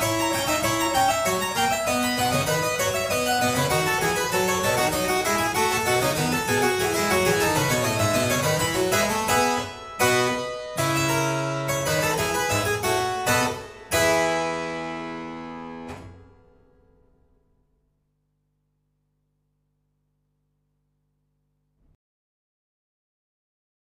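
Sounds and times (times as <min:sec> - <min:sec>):
harpsichord concert piece: 0:00.0 - 0:16.6.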